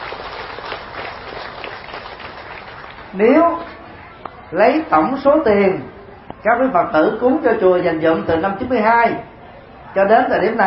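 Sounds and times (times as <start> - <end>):
audience applause: 0.0 - 3.2
speech: 3.1 - 3.7, 4.5 - 9.3, 10.0 - 10.6.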